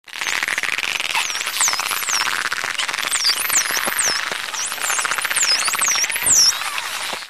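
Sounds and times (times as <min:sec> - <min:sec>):
dolphins squeaking: 0:00.2 - 0:07.2.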